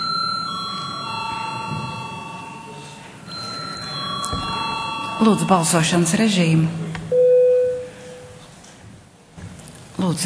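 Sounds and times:
electric bell in a parliament chamber ringing before a vote: 0:00.0 - 0:06.1
low room murmur: 0:00.0 - 0:10.2
speech: 0:05.2 - 0:06.8.

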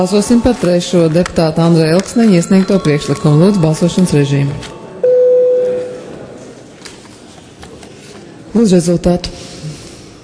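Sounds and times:
speech: 0:00.0 - 0:04.8, 0:08.5 - 0:09.5
faint murmur: 0:00.0 - 0:10.2
parliament voting bell electronic tone: 0:02.2 - 0:06.0.

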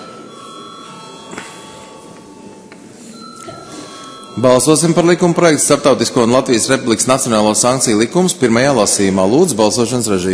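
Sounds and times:
parliament voting bell ringing: 0:00.0 - 0:07.4
speech: 0:04.4 - 0:10.3.

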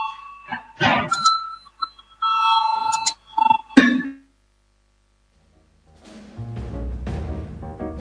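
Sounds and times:
parliamentary voting bell of bright electronic chime tones: 0:00.0 - 0:04.2.

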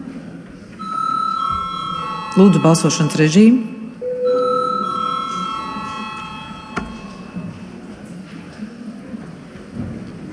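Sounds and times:
parliament voting bell ringing: 0:00.8 - 0:07.8
speech: 0:02.4 - 0:03.7.

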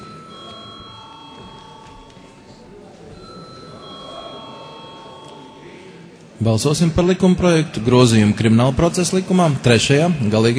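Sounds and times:
parliament chamber bell ringing: 0:00.0 - 0:06.1
speech: 0:06.4 - 0:10.5.

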